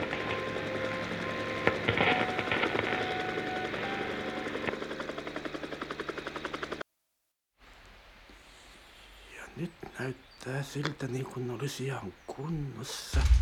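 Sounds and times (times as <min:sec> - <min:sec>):
helicopter flying: 0:00.0 - 0:06.8
speech: 0:10.0 - 0:13.4.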